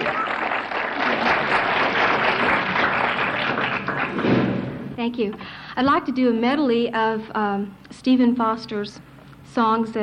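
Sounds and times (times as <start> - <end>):
audience applauding to welcome a singer onto the stage: 0.0 - 4.7
speech: 5.0 - 10.0.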